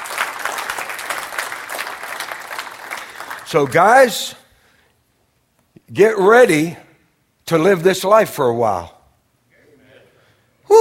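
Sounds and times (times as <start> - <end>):
hand clapping: 0.0 - 3.5
speech: 3.5 - 4.4, 5.9 - 6.8, 7.5 - 9.0.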